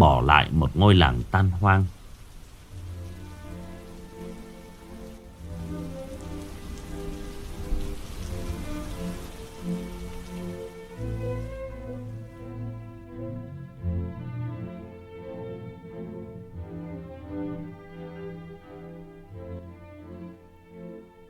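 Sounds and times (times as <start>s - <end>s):
steady rain from a storm over a village: 0.0s - 21.2s
speech: 0.1s - 2.0s
low tonal hum: 2.8s - 19.2s.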